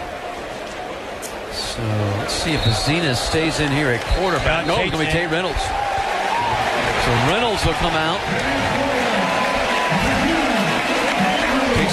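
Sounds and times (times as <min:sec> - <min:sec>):
speech: 0:01.5 - 0:05.9, 0:07.0 - 0:09.0
crowd at a Clemson football game clapping as a quarterback enters: 0:03.6 - 0:11.9.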